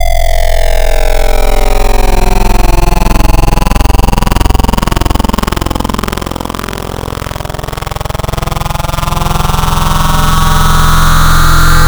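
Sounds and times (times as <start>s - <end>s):
spectral wavetable synth: 0.0s - 11.8s.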